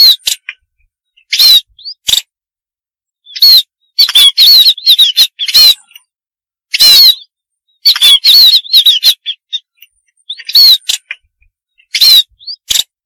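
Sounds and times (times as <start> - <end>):
munia harsh buzzy calls and thin wavering whistles: 0.0 - 0.5, 1.1 - 2.1, 3.2 - 6.1, 6.7 - 12.7.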